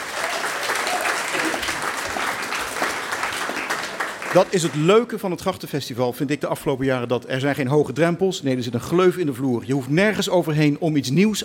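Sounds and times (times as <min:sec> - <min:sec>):
audience applause: 0:00.0 - 0:05.1
speech: 0:04.4 - 0:11.4.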